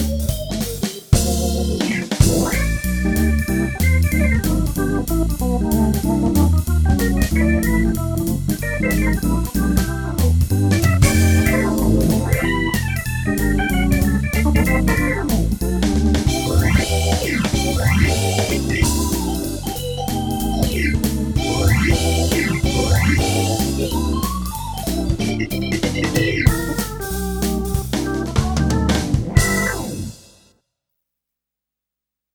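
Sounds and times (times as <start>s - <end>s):
harmonic bars: 0.0s - 30.2s.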